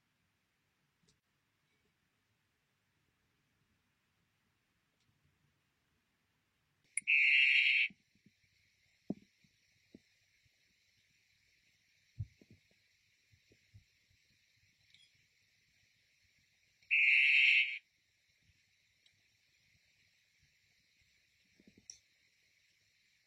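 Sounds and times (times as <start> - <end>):
Blue poison dart frog buzzy trill call: 7.0 - 7.9, 16.9 - 17.8.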